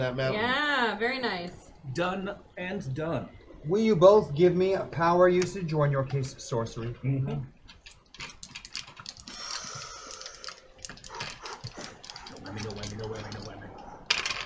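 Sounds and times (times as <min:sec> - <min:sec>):
speech: 0:00.0 - 0:07.6
dice rolled during a tabletop role-playing game: 0:07.7 - 0:14.4.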